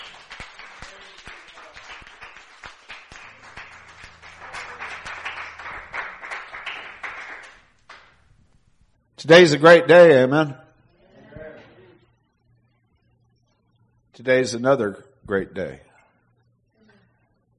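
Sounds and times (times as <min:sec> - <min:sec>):
audience cheering and clapping: 0:00.0 - 0:08.2
speech: 0:09.2 - 0:10.6, 0:14.2 - 0:15.9.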